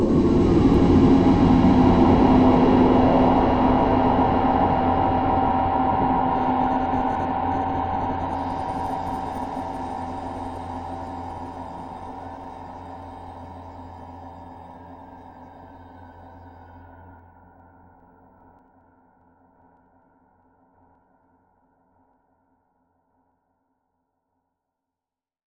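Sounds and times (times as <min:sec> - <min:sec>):
ambient music: 0:00.1 - 0:18.3.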